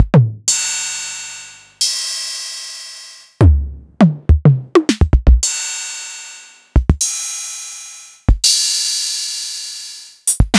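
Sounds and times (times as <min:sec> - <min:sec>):
DMX606 drum machine: 0:00.0 - 0:05.8, 0:06.8 - 0:10.5.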